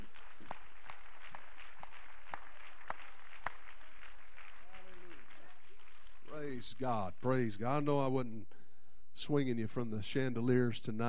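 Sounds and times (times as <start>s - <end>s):
audience clapping hands: 0.0s - 7.6s
speech: 6.6s - 8.6s, 9.2s - 11.0s.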